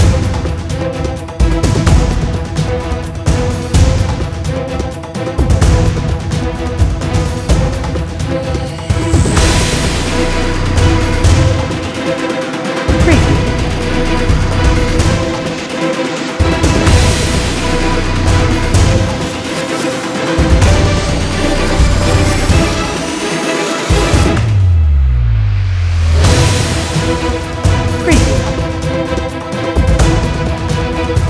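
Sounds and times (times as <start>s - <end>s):
cinematic epic orchestral strings for an action film trailer: 0.0s - 31.2s.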